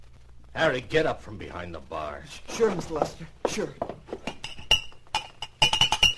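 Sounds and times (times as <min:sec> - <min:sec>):
speech: 0:00.6 - 0:04.0
whiskey glasses clinking as drinks are served at a bar: 0:04.1 - 0:06.1.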